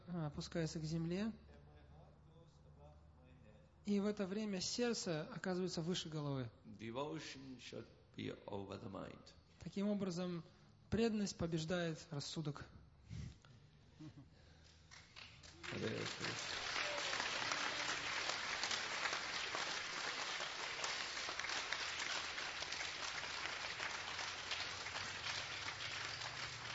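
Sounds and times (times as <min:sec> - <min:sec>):
speech: 0:00.1 - 0:01.5, 0:03.9 - 0:12.8, 0:15.7 - 0:16.6
audience applause: 0:14.9 - 0:26.7.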